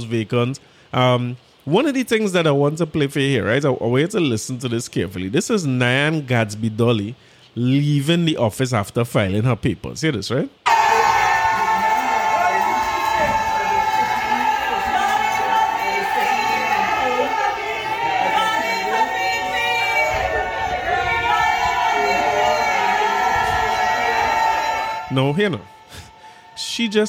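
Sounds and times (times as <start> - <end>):
speech: 0.0 - 10.7, 25.2 - 25.8, 26.6 - 27.0
crowd of PNM party supporters cheering, shouting and whooping: 10.6 - 27.0.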